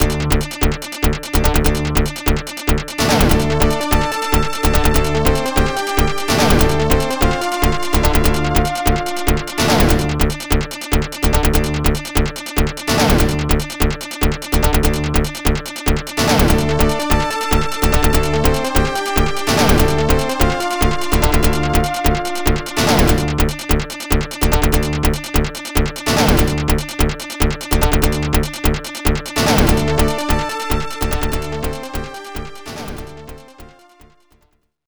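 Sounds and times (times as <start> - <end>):
arcade player select sound: 0.0 - 13.8, 14.6 - 34.1.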